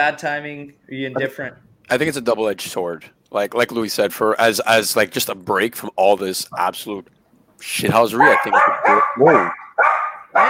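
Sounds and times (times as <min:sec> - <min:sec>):
speech: 0:00.0 - 0:09.6
dog barking: 0:08.2 - 0:10.4.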